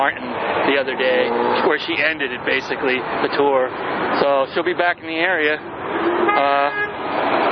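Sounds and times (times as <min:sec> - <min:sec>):
speech: 0:00.0 - 0:07.4
car horns honking: 0:06.0 - 0:07.1.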